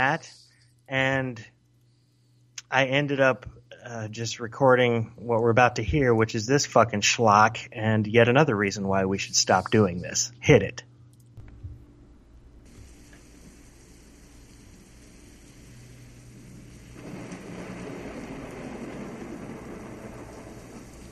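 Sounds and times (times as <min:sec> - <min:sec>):
speech: 0:00.0 - 0:01.6, 0:02.7 - 0:10.9
thunder and lightning: 0:12.7 - 0:21.0.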